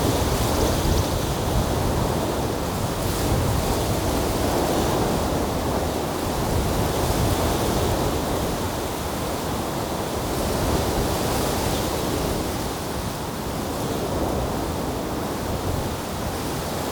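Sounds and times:
wind at the beach on a windy day: 0.0s - 16.8s.

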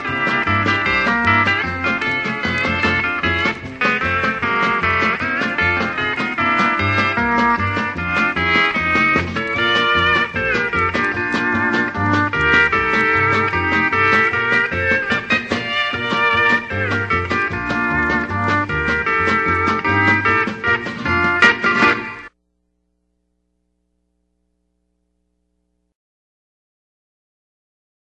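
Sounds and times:
polka music: 0.0s - 22.4s.

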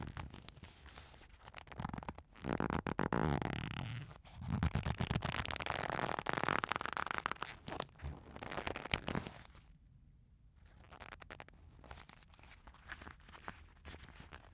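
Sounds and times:
leather friction rubs: 1.6s - 9.3s.

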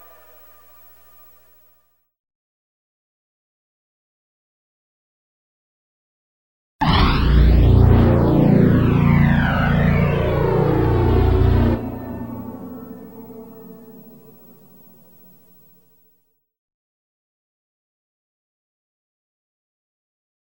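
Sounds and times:
synthesizer: 6.8s - 15.8s.

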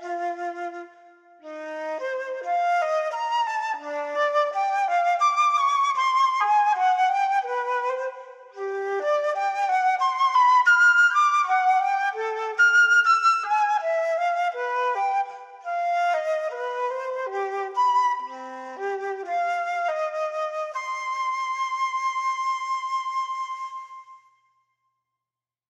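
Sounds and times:
unaccompanied flute playing a baroque sarabande: 0.0s - 24.4s.

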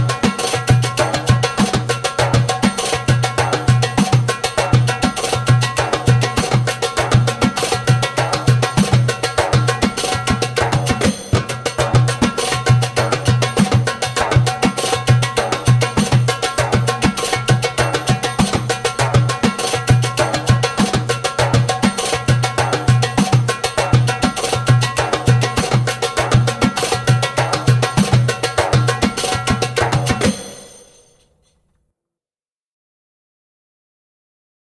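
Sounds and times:
fast djembe rhythm: 0.0s - 30.7s.

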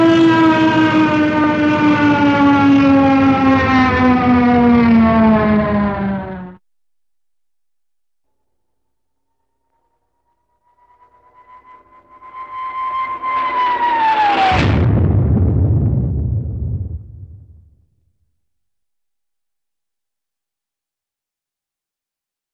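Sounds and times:
single-engine propeller plane diving: 0.0s - 6.6s, 9.7s - 17.8s.

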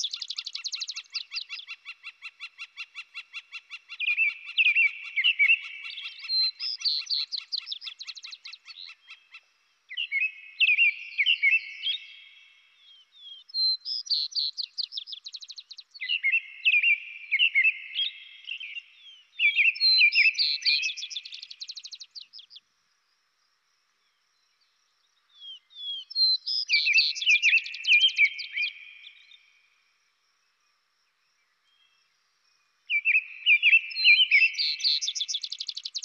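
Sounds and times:
robin singing: 0.0s - 22.6s, 25.2s - 29.5s, 32.9s - 36.0s.

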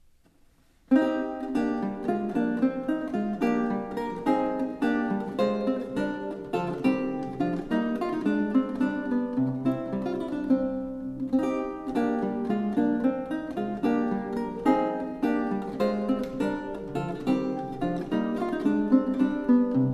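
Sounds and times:
galliard dance piece on lute: 0.1s - 19.9s.

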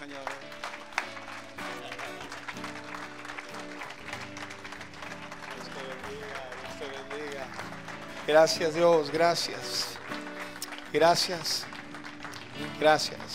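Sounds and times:
crowd applause: 0.0s - 13.3s
speech: 8.3s - 9.9s, 10.9s - 11.7s, 12.6s - 13.3s.

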